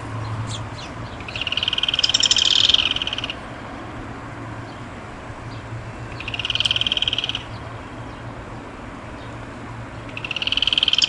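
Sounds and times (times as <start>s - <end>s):
yellow-chinned spinetail fast rattling trill: 0.5s - 3.4s, 6.2s - 7.5s, 10.1s - 11.0s.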